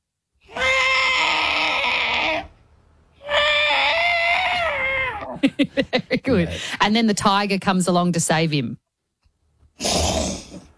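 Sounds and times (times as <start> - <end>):
voice imitating trapped elephant trumpeting for help: 0.5 - 2.6, 3.2 - 5.4
speech: 5.5 - 8.8.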